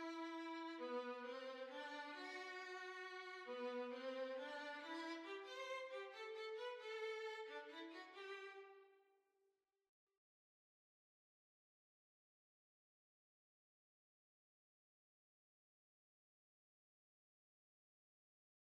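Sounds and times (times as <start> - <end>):
violin: 0.0 - 8.9.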